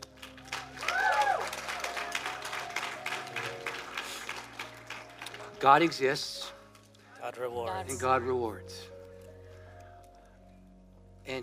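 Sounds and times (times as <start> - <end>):
audience applause: 0.0 - 6.1
audience cheering: 0.4 - 3.7
speech: 5.6 - 6.5, 7.2 - 8.9, 11.3 - 11.4.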